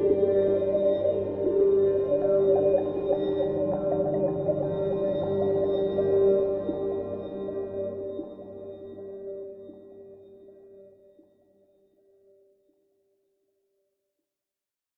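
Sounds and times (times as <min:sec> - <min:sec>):
Zen water music: 0:00.0 - 0:11.6.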